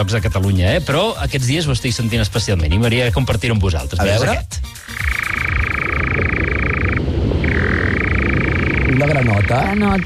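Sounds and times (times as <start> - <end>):
speech: 0.0 - 5.5, 9.0 - 10.0
European nightjar churring call at dusk: 4.1 - 10.0.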